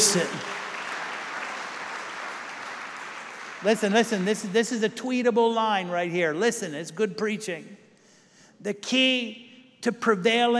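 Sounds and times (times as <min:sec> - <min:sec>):
speech: 0:00.0 - 0:00.6, 0:03.6 - 0:07.8, 0:08.6 - 0:10.5
applause: 0:00.0 - 0:04.9.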